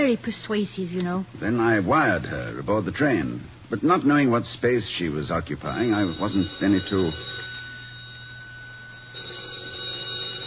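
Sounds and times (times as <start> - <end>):
speech: 0.1 - 7.5
telephone ringing: 5.6 - 10.4.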